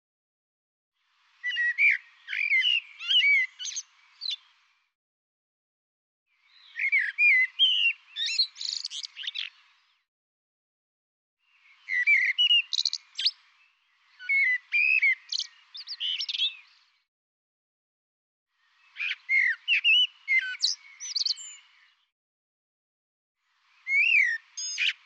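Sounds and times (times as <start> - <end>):
bird song with chirps whistles and trilled notes: 1.0 - 4.9, 6.3 - 10.1, 11.4 - 17.1, 18.6 - 22.1, 23.4 - 25.0.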